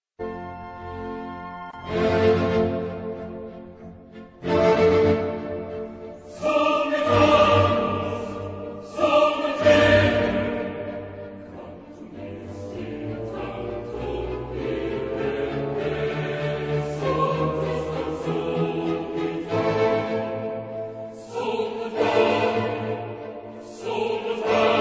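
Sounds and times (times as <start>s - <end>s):
chorus singing: 1.8s - 24.7s.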